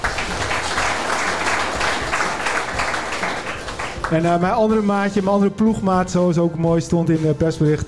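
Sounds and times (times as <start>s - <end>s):
audience applause: 0.0s - 4.3s
speech: 4.1s - 7.8s.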